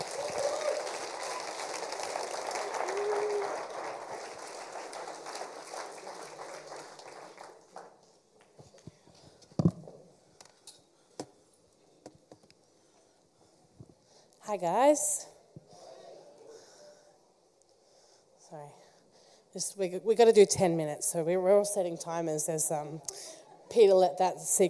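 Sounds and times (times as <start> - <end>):
audience at a church service applauding a speaker: 0.0 - 8.6
speech: 14.5 - 15.3, 19.6 - 24.6.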